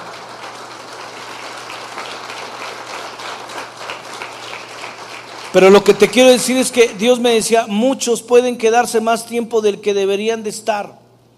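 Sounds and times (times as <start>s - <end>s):
audience applause: 0.0s - 7.2s
speech: 5.5s - 11.0s.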